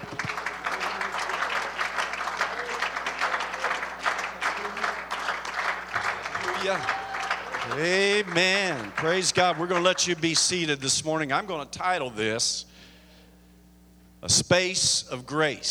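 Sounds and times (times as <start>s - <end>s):
audience applause: 0.0s - 10.9s
speech: 6.6s - 7.0s, 7.7s - 12.7s, 14.2s - 15.6s.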